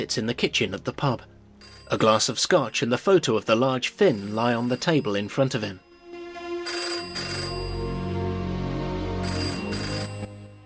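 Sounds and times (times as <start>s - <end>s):
speech: 0.0s - 1.3s, 1.9s - 5.9s
sustained tonal background: 0.0s - 3.0s, 3.8s - 10.6s
telephone ringing in a pub: 1.6s - 2.5s, 4.0s - 10.6s.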